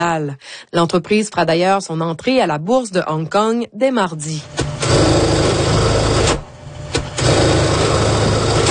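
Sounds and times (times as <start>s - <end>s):
speech: 0.1s - 5.4s
sewing machine humming: 4.4s - 8.6s.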